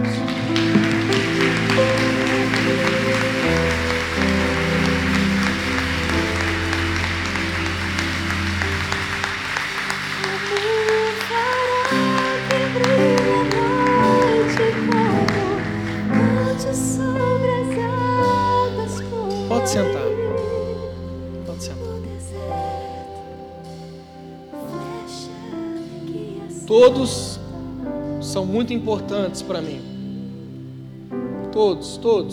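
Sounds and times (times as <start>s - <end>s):
church audience applauding: 0.0s - 17.0s
loud sustained music: 0.0s - 32.3s
speech: 28.7s - 29.9s, 31.6s - 32.3s.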